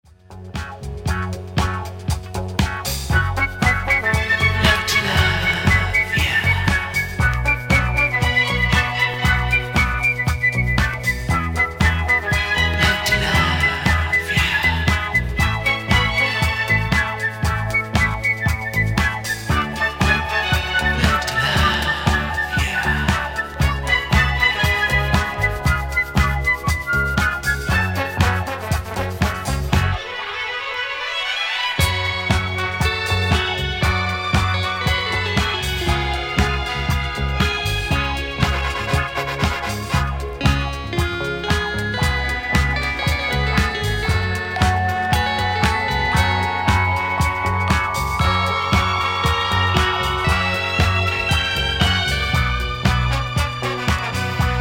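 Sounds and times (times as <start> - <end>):
classical salsa music: 0.4 - 54.5.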